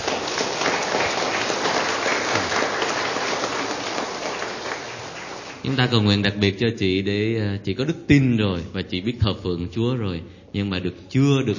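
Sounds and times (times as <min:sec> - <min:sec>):
audience applause: 0:00.0 - 0:05.8
speech: 0:05.7 - 0:11.5.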